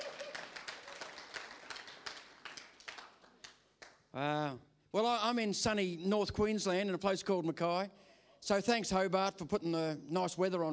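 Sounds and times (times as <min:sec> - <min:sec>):
audience clapping for first-time visitors: 0:00.0 - 0:03.5
speech: 0:04.2 - 0:10.7.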